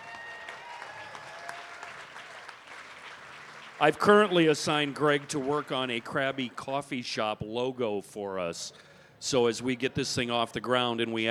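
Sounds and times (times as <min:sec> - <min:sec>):
audience applause: 0:00.0 - 0:06.6
speech: 0:03.8 - 0:11.2.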